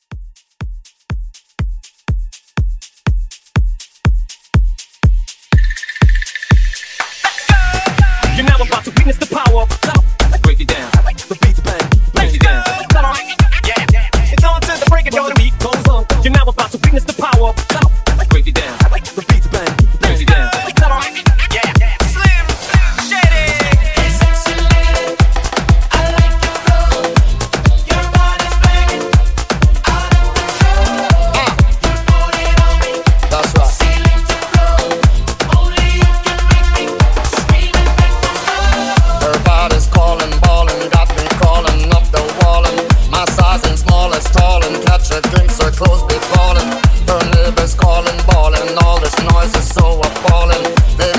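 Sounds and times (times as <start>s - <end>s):
clean club music: 0.0s - 51.1s.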